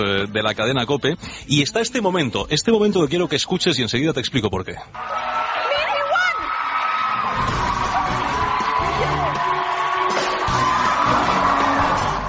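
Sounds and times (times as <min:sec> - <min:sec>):
speech: 0:00.0 - 0:05.3
TV studio audience shouting: 0:05.0 - 0:12.2.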